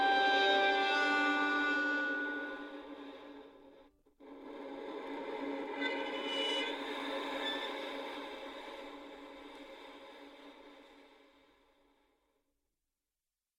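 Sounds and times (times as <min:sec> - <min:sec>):
violin: 0:00.0 - 0:10.1.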